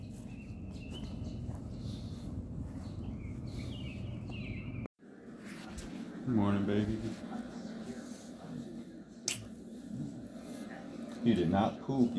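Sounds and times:
birds chirping outdoors: 0.0s - 4.9s
speech: 6.3s - 7.6s, 11.2s - 12.1s.

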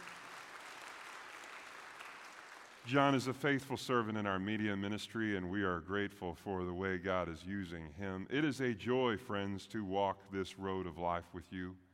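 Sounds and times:
audience applause: 0.0s - 2.9s
speech: 2.8s - 11.8s.

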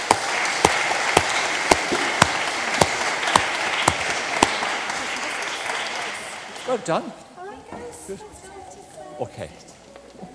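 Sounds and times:
audience applause: 0.0s - 7.1s
speech: 6.7s - 7.2s, 8.1s - 8.4s, 9.2s - 9.7s.

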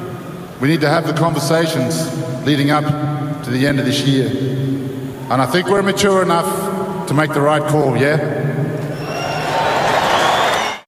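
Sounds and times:
speech: 0.6s - 4.5s, 5.3s - 8.4s
audience applause at an Australian football event: 9.1s - 10.8s.

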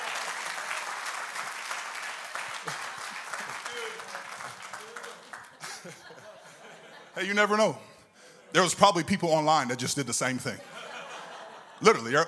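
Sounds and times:
audience clapping hands: 0.0s - 6.2s
laughter: 2.5s - 8.8s, 10.3s - 12.2s
speech: 7.2s - 7.9s, 8.5s - 10.9s, 11.8s - 12.2s.

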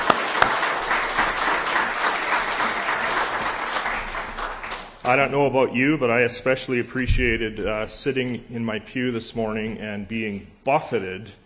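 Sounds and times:
audience applauding: 0.0s - 5.2s
speech: 5.1s - 11.4s.

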